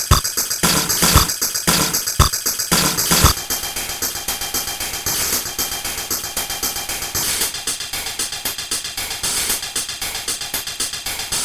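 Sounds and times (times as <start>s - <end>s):
slow break: 0.0s - 11.4s.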